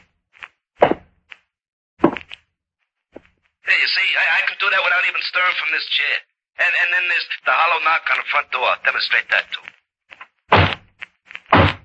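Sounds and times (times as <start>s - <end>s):
invisible footsteps sound effect: 2.0s - 2.4s, 9.4s - 11.8s
speech: 4.2s - 9.7s.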